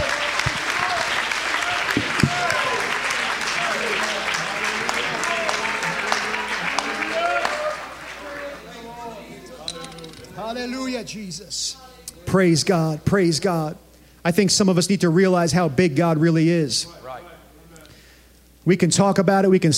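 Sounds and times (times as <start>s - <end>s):
audience clapping: 0.0s - 10.1s
speech: 11.0s - 17.0s, 18.6s - 19.7s.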